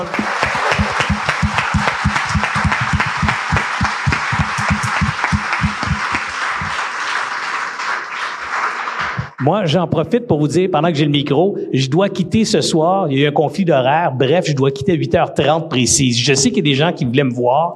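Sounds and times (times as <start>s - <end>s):
audience applause for a panel: 0.0s - 9.4s
speech: 9.4s - 17.7s.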